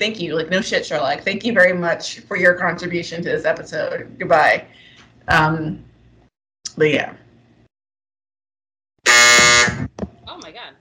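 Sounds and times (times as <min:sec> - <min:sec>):
speech: 0:00.0 - 0:05.9, 0:06.8 - 0:07.2
buzzer sound effect: 0:09.0 - 0:10.0.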